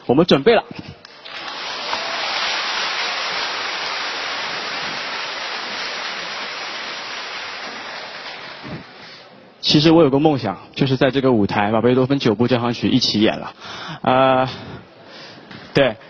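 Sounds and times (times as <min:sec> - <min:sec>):
speech: 0:00.1 - 0:01.0, 0:09.7 - 0:14.8, 0:15.8 - 0:16.0
warm applause from concert audience: 0:01.1 - 0:09.3.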